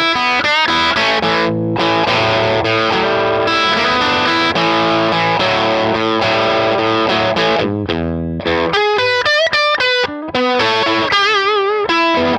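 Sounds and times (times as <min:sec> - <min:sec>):
Les Paul electric guitar with P90 pickup: 0:00.0 - 0:12.3.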